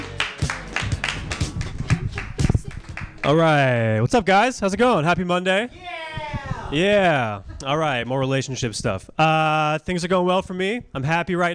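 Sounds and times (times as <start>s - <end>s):
audience clapping: 0.0s - 3.5s
speech: 3.2s - 5.9s, 6.7s - 11.5s.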